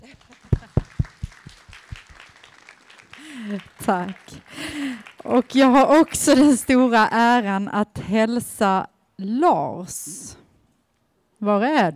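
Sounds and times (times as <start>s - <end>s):
audience applause: 0.0s - 6.6s
speech: 3.5s - 10.4s, 11.4s - 11.9s.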